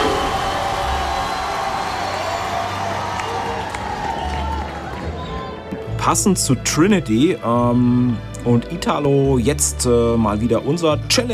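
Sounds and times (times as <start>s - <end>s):
applause: 0.0s - 5.7s
speech: 6.0s - 11.3s.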